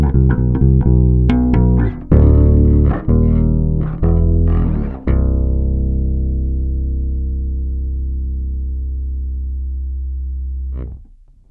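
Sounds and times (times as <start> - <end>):
bass guitar sample played near the bridge: 0.0 - 11.4.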